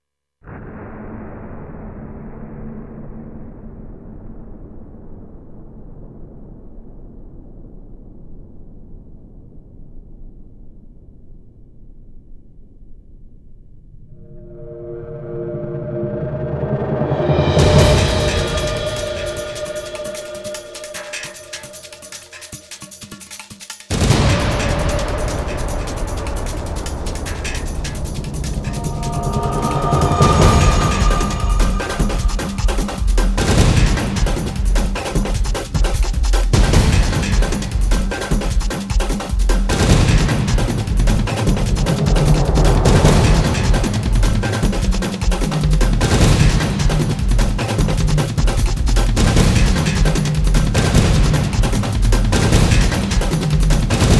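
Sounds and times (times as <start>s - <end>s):
drums and percussion: 16.4s - 54.1s.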